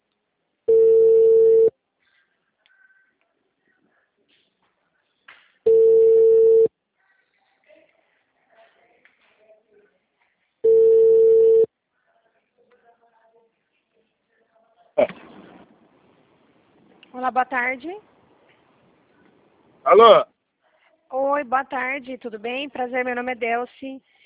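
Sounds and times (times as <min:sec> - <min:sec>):
ringback tone on an outgoing phone call: 0:00.7 - 0:01.7, 0:05.7 - 0:06.7, 0:10.6 - 0:11.7
speech: 0:17.3 - 0:18.1, 0:19.9 - 0:20.3, 0:21.3 - 0:24.1.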